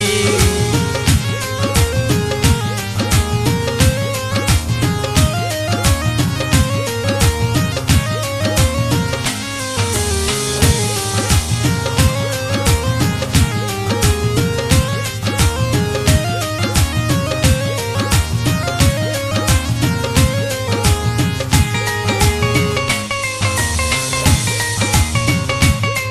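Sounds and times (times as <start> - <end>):
Rajasthani romantic music: 0.0 - 26.0.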